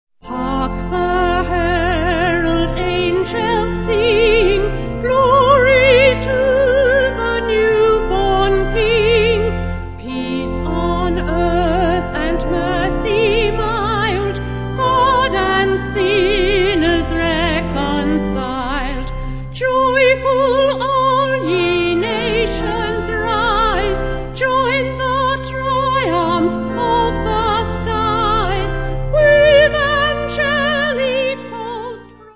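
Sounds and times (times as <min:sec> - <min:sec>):
vocal organ: 0:00.2 - 0:32.3.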